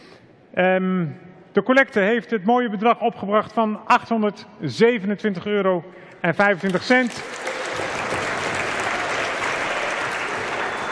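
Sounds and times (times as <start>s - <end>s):
speech: 0.5s - 8.0s
audience clapping after the collection total announcement: 6.5s - 10.9s.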